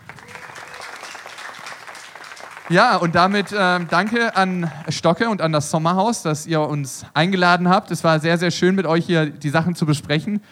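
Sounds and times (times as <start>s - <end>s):
audience applause at a live event: 0.0s - 5.4s
speech: 2.7s - 10.5s.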